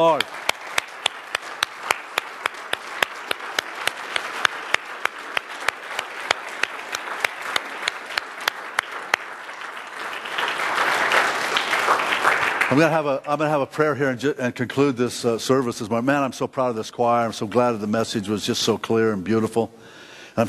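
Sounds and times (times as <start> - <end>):
speech: 0.0 - 0.4, 12.7 - 20.4
audience applause: 0.0 - 13.6.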